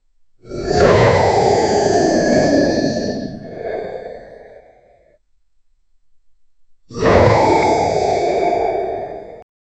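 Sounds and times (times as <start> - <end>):
Charizard Pokemon dragon roar: 0.4 - 4.8, 6.9 - 9.4.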